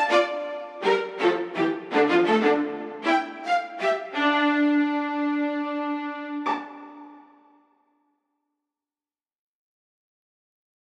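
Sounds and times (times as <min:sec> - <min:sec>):
viola: 0:00.0 - 0:07.4.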